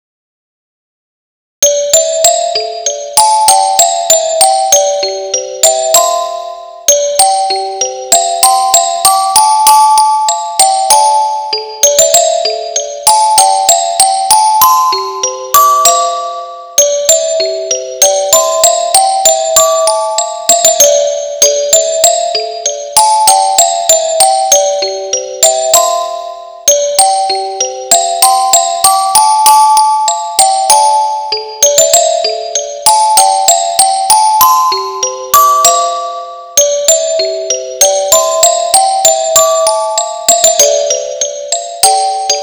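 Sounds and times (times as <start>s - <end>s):
music box arrangement: 1.6s - 42.4s.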